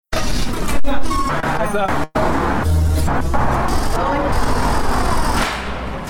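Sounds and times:
city street traffic roar of cars, buses and trucks: 0:00.1 - 0:06.0
indistinct voices: 0:00.5 - 0:05.4.

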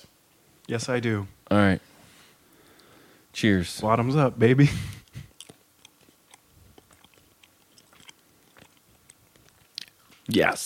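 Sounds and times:
speech: 0:00.7 - 0:01.9, 0:03.4 - 0:05.0, 0:10.3 - 0:10.6
person chewing a jelly bean: 0:04.9 - 0:10.3.

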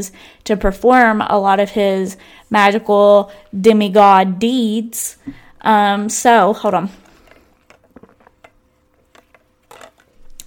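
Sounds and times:
speech: 0:00.0 - 0:07.1
person gulping a drink of water: 0:07.0 - 0:09.4.

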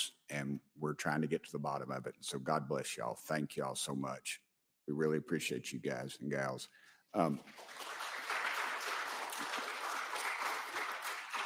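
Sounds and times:
speech: 0:00.4 - 0:08.0
audience clapping: 0:07.2 - 0:11.4.

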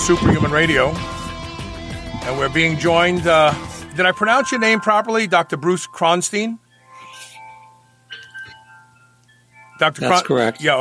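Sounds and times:
speech: 0:00.0 - 0:01.2, 0:02.3 - 0:06.6, 0:09.8 - 0:10.8
wind chimes ringing outdoors: 0:02.2 - 0:10.8
low steady hum: 0:03.0 - 0:10.8.

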